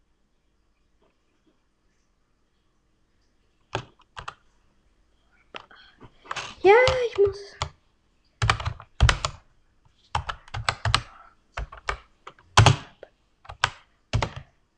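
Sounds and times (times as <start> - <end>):
computer keyboard typing a command into a game: 3.7 - 4.4, 6.6 - 7.8, 8.4 - 9.4, 10.1 - 14.5
speech: 6.6 - 7.7.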